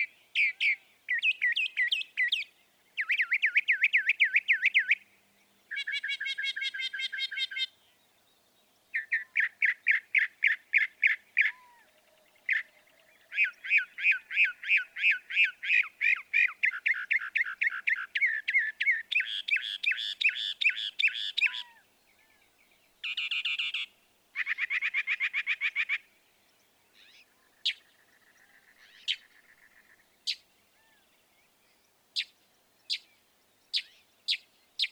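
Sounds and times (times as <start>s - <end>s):
northern mockingbird song: 0.0s - 34.9s.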